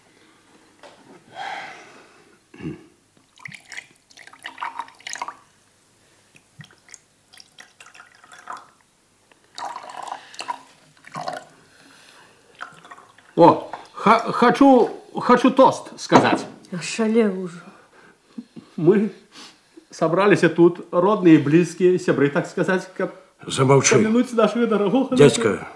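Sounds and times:
speech: 0:02.6 - 0:02.9, 0:13.4 - 0:17.7, 0:18.8 - 0:19.2, 0:20.0 - 0:25.7
drink pouring into a glass: 0:03.3 - 0:05.5, 0:06.6 - 0:08.8, 0:09.5 - 0:11.6, 0:12.5 - 0:13.4.

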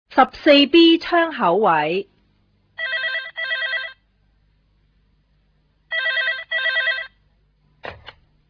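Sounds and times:
speech: 0:00.2 - 0:02.1
telephone ringing in classic double bursts: 0:02.8 - 0:04.0, 0:05.9 - 0:07.2.

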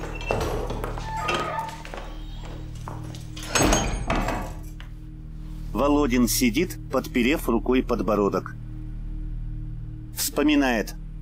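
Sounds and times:
door shutting: 0:00.0 - 0:04.6
speech: 0:05.8 - 0:08.6, 0:10.4 - 0:11.0.

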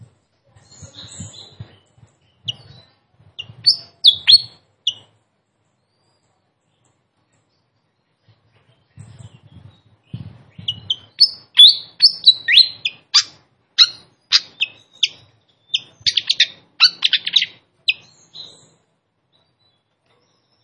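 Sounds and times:
Malaysian pied fantail singing with chirps and trills: 0:00.6 - 0:05.1, 0:09.0 - 0:18.8.

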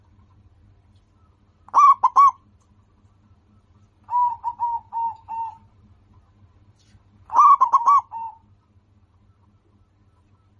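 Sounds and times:
local-strain zebra dove singing: 0:01.7 - 0:02.5, 0:04.1 - 0:05.7, 0:07.3 - 0:08.6.

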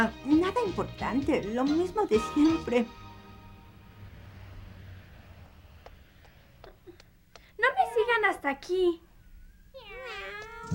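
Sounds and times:
speech: 0:00.0 - 0:03.0, 0:08.4 - 0:09.1
cat meowing: 0:09.2 - 0:10.7.

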